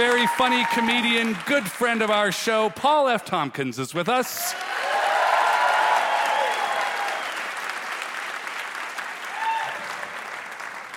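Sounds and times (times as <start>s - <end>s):
audience clapping to welcome a comedian guest back to a show: 0.0s - 2.9s, 4.1s - 10.9s
speech: 0.0s - 4.7s.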